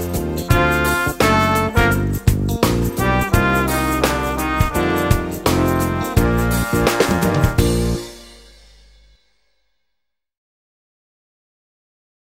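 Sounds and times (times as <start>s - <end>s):
trumpet: 0.4s - 8.7s.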